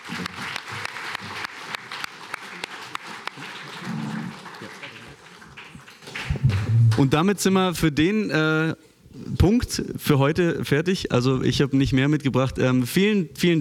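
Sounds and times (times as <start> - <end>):
audience applause: 0.0 - 7.1
speech: 7.0 - 13.5.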